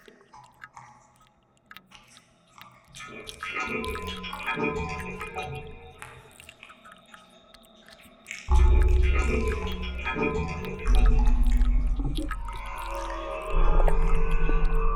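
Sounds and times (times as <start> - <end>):
rain chime tinkling: 8.5 - 14.9.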